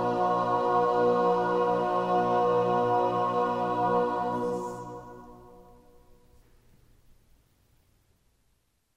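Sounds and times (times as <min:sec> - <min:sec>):
choir singing a motet: 0:00.0 - 0:06.2.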